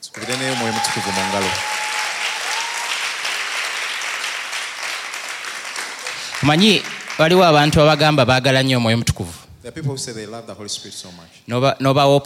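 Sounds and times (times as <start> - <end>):
crowd applauding: 0.0 - 8.4
speech: 0.2 - 1.8, 6.4 - 12.2.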